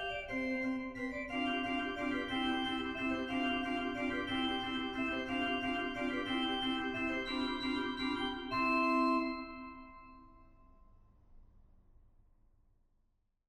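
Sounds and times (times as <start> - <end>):
presto played on organ: 0.0 - 10.1.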